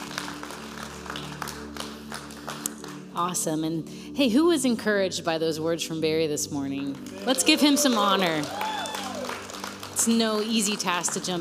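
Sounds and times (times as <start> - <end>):
crowd applause: 0.0 - 3.0, 7.0 - 11.3
speech: 3.2 - 8.7, 10.0 - 11.3.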